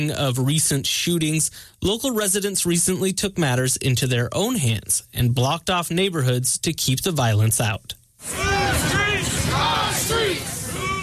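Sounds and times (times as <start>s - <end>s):
speech: 0.0s - 8.4s
large crowd marching down North Aurora Avenue near 102nd Street: 8.2s - 11.0s.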